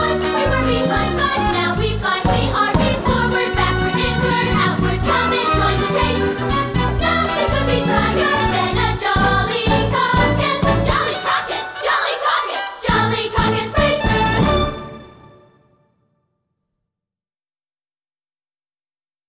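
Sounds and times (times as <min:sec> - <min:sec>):
guided vocal: 0:00.0 - 0:14.4.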